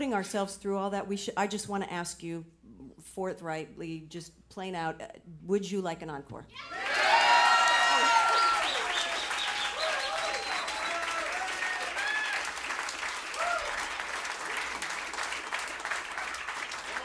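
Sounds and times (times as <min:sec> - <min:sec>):
speech: 0:00.0 - 0:07.1
high whoops and shouted cheers: 0:06.6 - 0:12.6, 0:13.3 - 0:13.9
audience applause: 0:06.7 - 0:17.0.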